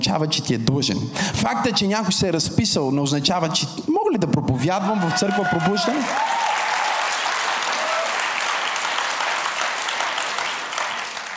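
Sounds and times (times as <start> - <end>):
speech: 0.0 - 6.4
church audience applauding weakly: 5.4 - 11.3.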